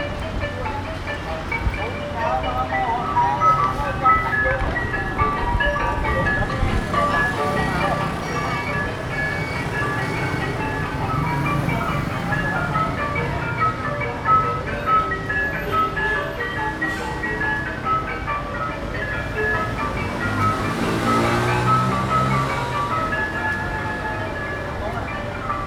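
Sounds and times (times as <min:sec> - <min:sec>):
glockenspiel music at a wedding in Phnom Penh Cambodia: 0:00.0 - 0:25.6.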